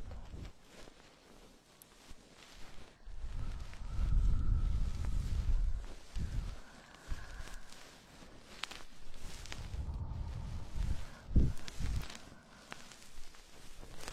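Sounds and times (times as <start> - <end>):
goose-feather stick cleaning an ear: 0.0 - 14.1
faint whistles: 3.1 - 7.8.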